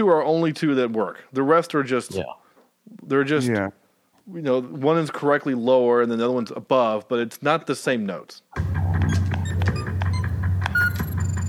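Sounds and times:
speech: 0.0s - 8.7s
electronic beeps: 9.0s - 11.4s.

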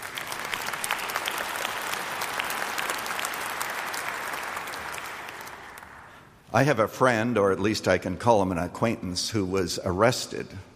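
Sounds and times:
audience clapping in agreement: 0.0s - 6.3s
speech: 6.5s - 10.7s.

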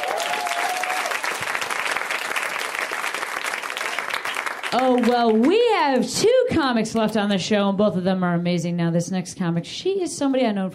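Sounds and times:
comedy show audience applause: 0.0s - 6.1s
speech: 4.7s - 10.7s.

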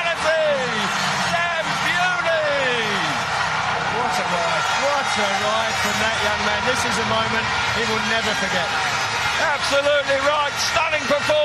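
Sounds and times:
speedway crowd cheering: 0.0s - 11.4s
speech: 5.9s - 11.4s.

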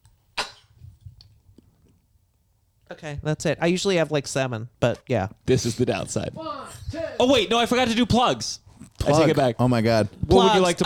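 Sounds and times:
person sneezing: 0.4s - 0.8s
speech: 2.9s - 10.8s.

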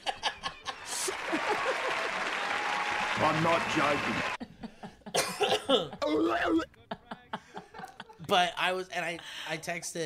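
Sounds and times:
laughter: 0.0s - 2.5s, 3.4s - 8.4s
applause: 0.7s - 4.4s
speech: 3.2s - 4.4s, 5.7s - 6.8s, 8.3s - 10.0s.

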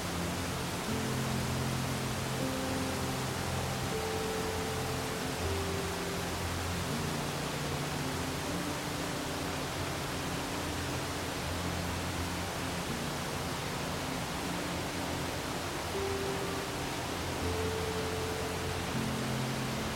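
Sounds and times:
soft music in low sustained tones: 0.0s - 19.9s
waterfall rushing: 0.0s - 19.9s.

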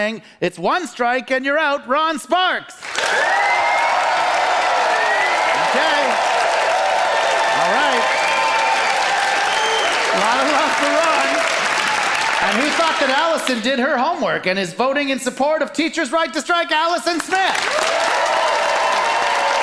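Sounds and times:
speech: 0.0s - 3.6s, 5.7s - 6.4s, 10.2s - 11.5s, 12.4s - 18.5s
audience applause voting: 2.8s - 13.6s, 17.2s - 19.6s.

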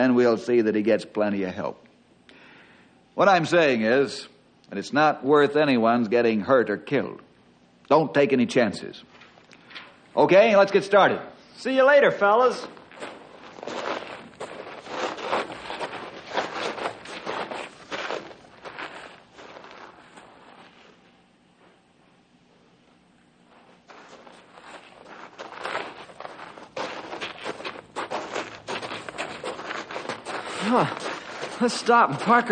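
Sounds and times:
speech: 0.0s - 1.8s, 3.2s - 7.2s, 7.9s - 9.1s, 10.2s - 13.1s, 31.6s - 32.5s
footsteps of people walking: 12.5s - 21.9s, 23.3s - 32.5s.

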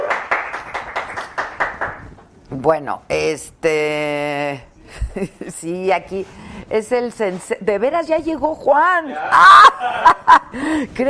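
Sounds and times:
applause: 0.0s - 2.3s
speech: 2.6s - 11.0s
laughter: 9.2s - 10.6s.

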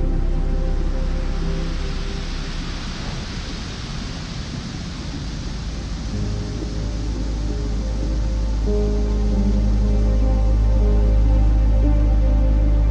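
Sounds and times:
low sustained piano tones: 0.0s - 3.8s, 6.1s - 12.9s
ocean waves: 0.1s - 12.9s.

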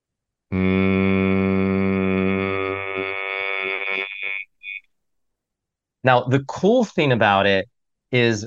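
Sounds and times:
person humming on the exhale: 0.5s - 4.8s
speech: 6.0s - 8.4s.

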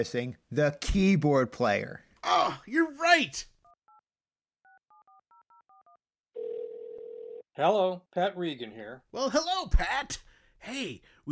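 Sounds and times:
speech: 0.0s - 3.5s, 7.6s - 11.3s
phone ringing tone as the call connects: 3.6s - 7.5s
phone number dialed in touch-tone beeps: 3.7s - 6.5s.

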